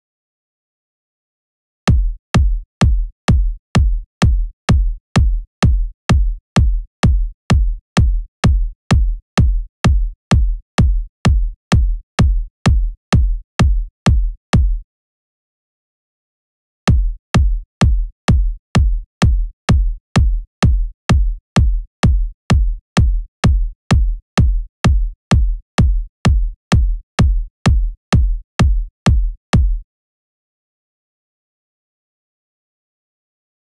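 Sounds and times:
128 BPM kick drum: 1.9 - 14.8, 16.9 - 29.8.

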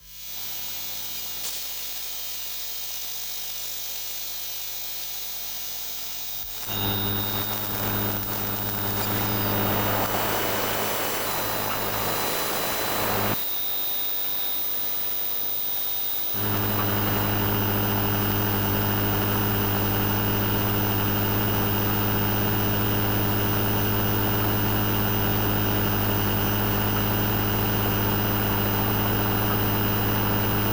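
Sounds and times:
electromagnetic field buzzing: 6.6 - 13.4, 16.4 - 30.7.

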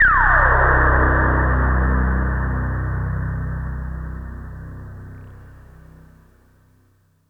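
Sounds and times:
IDM tone: 0.0 - 5.6.

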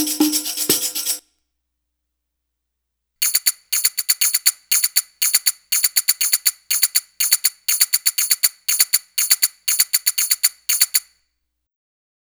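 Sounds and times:
Arabic rhythm percussion: 0.0 - 1.2, 3.2 - 11.1.

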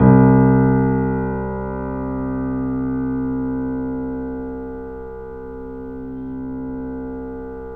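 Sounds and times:
piano note C: 0.0 - 7.7.

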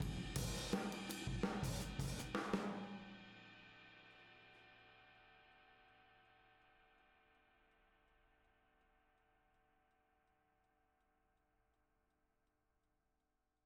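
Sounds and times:
boogaloo drums outro in a room: 0.0 - 3.2.

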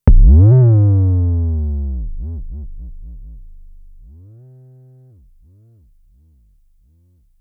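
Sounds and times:
drum machine: 0.0 - 0.7, 1.8 - 4.1.

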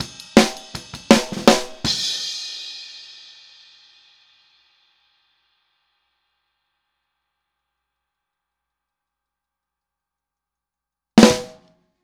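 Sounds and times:
snare drum outro: 0.0 - 2.2, 11.2 - 11.6.

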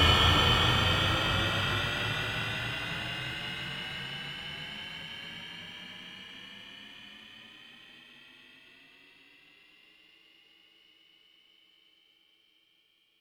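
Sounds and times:
aircraft taking off: 0.0 - 3.3.

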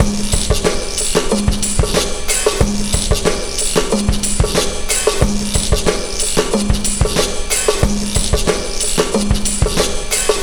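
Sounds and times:
breakbeat drums: 0.0 - 10.4.

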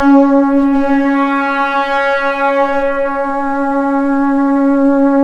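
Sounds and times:
Synclavier FM synthesizer C sharp note: 0.0 - 5.1.

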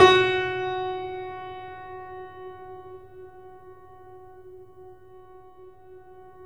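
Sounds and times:
Yamaha piano with sustain: 0.0 - 6.4.

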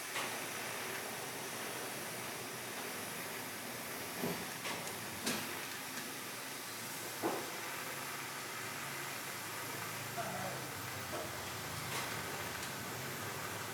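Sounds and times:
construction ambience: 0.1 - 13.7.

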